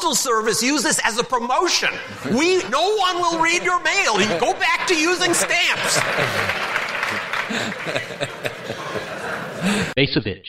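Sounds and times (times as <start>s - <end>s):
speech: 0.0s - 6.6s, 7.5s - 10.4s
laughter: 1.9s - 10.0s
audience clapping: 4.2s - 10.0s.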